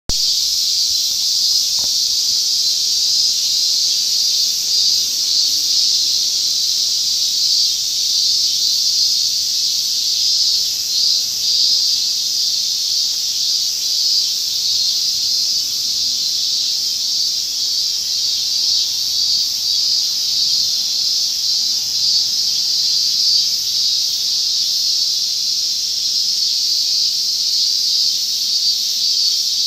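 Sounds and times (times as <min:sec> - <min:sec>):
cicada buzzing: 0:00.1 - 0:29.6.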